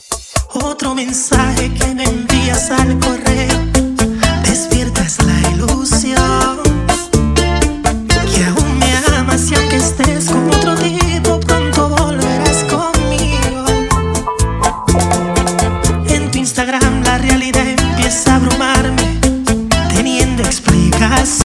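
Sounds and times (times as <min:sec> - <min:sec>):
remix music at 124 bpm: 0:00.1 - 0:21.4.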